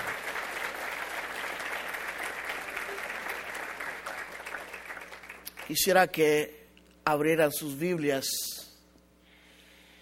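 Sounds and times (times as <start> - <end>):
audience clapping hands: 0.0 - 6.0
speech: 5.7 - 8.6.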